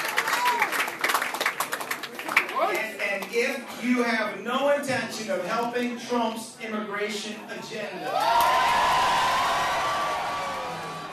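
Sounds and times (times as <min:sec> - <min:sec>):
enthusiastic crowd cheering: 0:00.0 - 0:02.6, 0:08.0 - 0:11.1
speech: 0:03.4 - 0:09.2.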